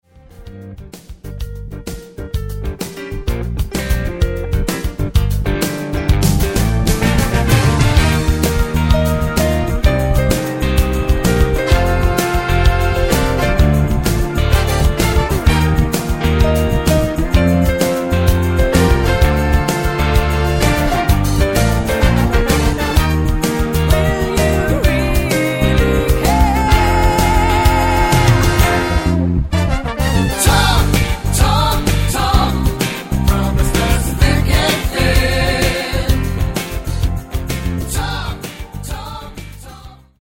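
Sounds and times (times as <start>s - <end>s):
karaoke backing track: 2.1s - 29.3s, 30.2s - 40.0s.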